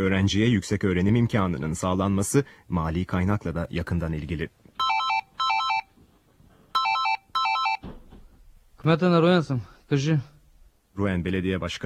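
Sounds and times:
speech: 0.0 - 4.6, 8.8 - 10.3, 11.0 - 11.8
mayor's phone melodic electronic ringtone: 4.8 - 5.9, 6.8 - 7.8.

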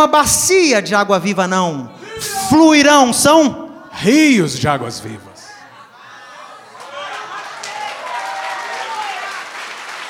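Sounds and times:
speech: 0.0 - 5.3
audience applause for actors: 6.7 - 10.0.

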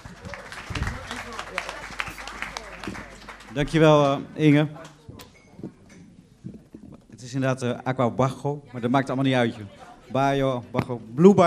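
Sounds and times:
audience applause: 0.0 - 4.8
speech: 3.6 - 4.8, 7.4 - 11.4.

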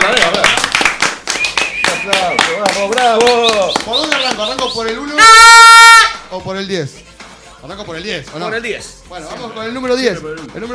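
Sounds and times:
clapping and applause in a studio: 0.0 - 5.2
speech: 2.8 - 5.6, 6.3 - 10.7.

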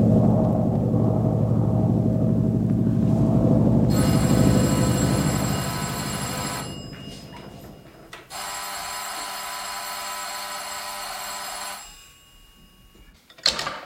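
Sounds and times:
low rumble: 0.0 - 8.3
telephone bell ringing at the airport police: 3.9 - 13.1.

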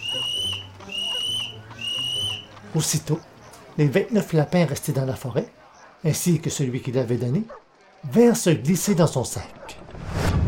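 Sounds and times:
young man giving long high-pitched whistles: 0.0 - 2.5
speech: 2.8 - 9.6.

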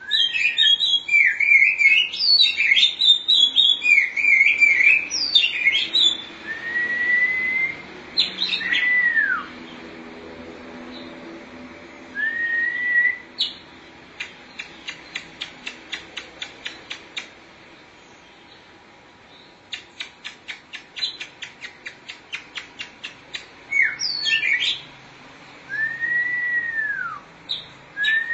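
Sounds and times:
Oriental magpie-robin singing: 0.0 - 9.5, 12.2 - 13.6, 23.7 - 24.8, 25.7 - 28.3.

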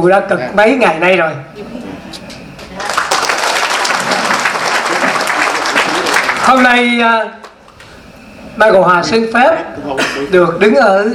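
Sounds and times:
speech: 0.0 - 1.8, 6.4 - 7.4, 8.5 - 11.1
crowd at a temple applauding their Buddhist master: 2.6 - 6.8.

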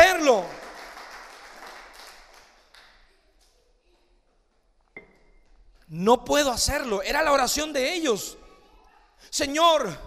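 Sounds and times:
audience applauding: 0.0 - 3.0
speech: 5.9 - 8.4, 9.2 - 10.0.

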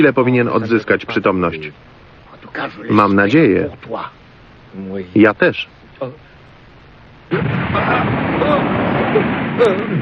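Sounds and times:
speech: 0.0 - 6.2, 7.3 - 10.0
explosion: 7.3 - 10.0.

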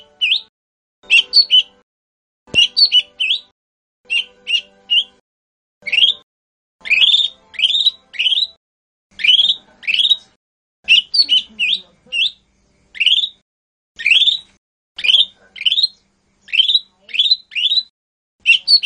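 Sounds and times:
bird song of short bright whistled phrases and rasping buzzy bursts: 0.0 - 1.8, 2.5 - 3.5, 4.1 - 5.2, 5.8 - 6.2, 6.8 - 10.2, 10.9 - 13.4, 14.0 - 18.8.

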